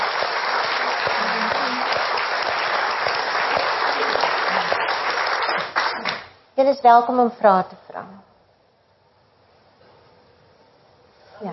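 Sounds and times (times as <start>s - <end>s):
audience clapping for a woman speaker after her talk: 0.0s - 6.4s
speech: 6.6s - 7.8s.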